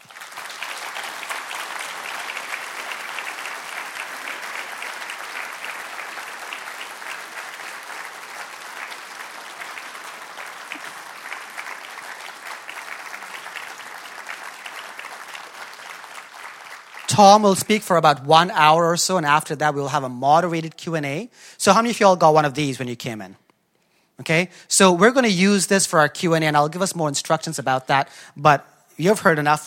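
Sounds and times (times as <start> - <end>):
audience applauding to welcome a speaker: 0.0 - 18.0
speech: 17.2 - 23.4, 24.2 - 29.6.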